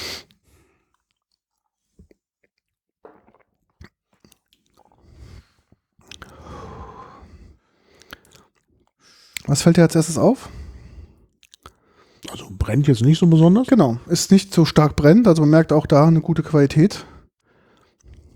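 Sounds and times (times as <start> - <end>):
sipping a strong spirit during a tasting: 3.0 - 5.0, 6.0 - 6.4, 11.4 - 16.6
slow exhale: 6.3 - 8.1
speech: 9.5 - 10.6, 12.7 - 17.1.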